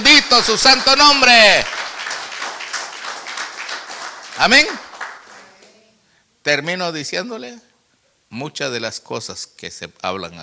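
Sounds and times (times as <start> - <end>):
speech: 0.0 - 1.8, 4.4 - 4.8, 6.4 - 7.7, 8.3 - 10.4
audience clapping: 0.0 - 5.8.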